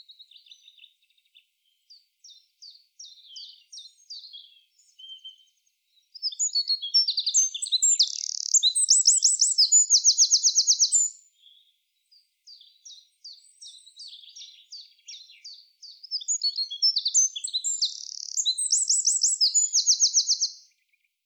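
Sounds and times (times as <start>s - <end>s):
Eurasian wren singing: 6.2s - 11.3s, 12.5s - 20.7s.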